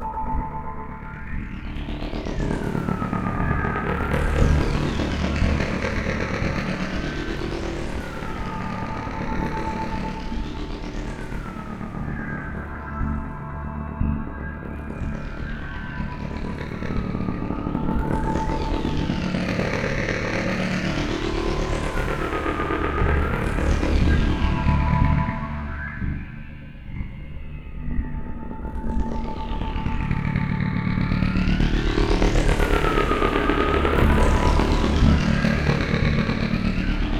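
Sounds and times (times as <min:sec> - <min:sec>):
ambience: 0:00.0 - 0:37.1.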